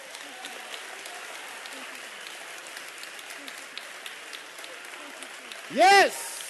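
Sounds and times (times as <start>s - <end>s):
congregation clapping hands during church worship: 0.0s - 6.4s.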